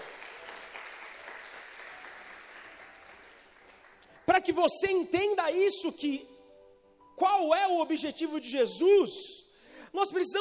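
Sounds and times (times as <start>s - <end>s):
crowd applauding: 0.0s - 4.6s
speech: 4.4s - 6.3s, 7.2s - 10.3s.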